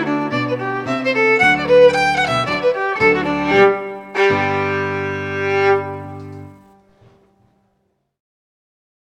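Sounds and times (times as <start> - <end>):
Scottish fiddle playing a reel: 0.0 - 6.8.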